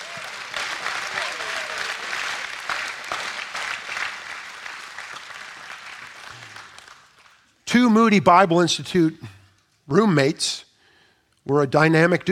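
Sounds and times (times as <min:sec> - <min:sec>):
audience applause: 0:00.0 - 0:07.4
speech: 0:07.8 - 0:09.3, 0:09.9 - 0:10.6, 0:11.4 - 0:12.3.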